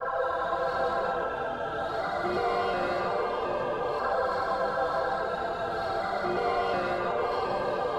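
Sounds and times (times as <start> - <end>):
long hallway ambience: 0.0 - 7.9.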